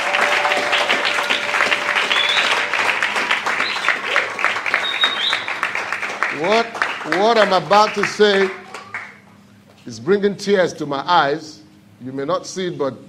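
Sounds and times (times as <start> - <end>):
whistles and cheers: 0.0 - 5.8
audience clapping: 0.0 - 9.4
speech: 6.4 - 8.6, 9.8 - 13.0.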